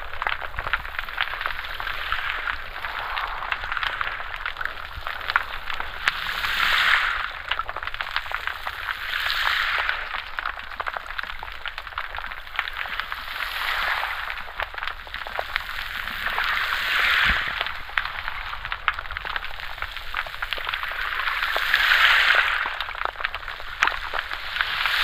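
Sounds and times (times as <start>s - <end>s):
ocean surf with pebbles recorded underwater: 0.0s - 25.0s.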